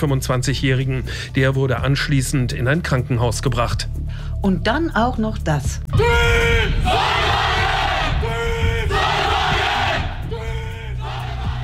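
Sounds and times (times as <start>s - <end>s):
speech: 0.0s - 7.0s
team shouting a battle cry in unison: 6.0s - 11.6s.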